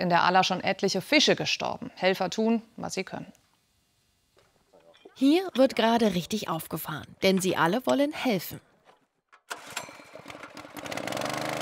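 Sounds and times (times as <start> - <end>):
speech: 0.0 - 3.4, 5.2 - 8.7
motor-driven water pump engine running: 10.2 - 11.5.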